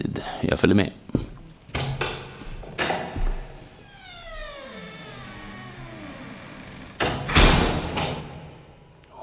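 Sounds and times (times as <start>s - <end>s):
speech: 0.2s - 1.0s
ugly theatre door being opened: 1.7s - 8.7s.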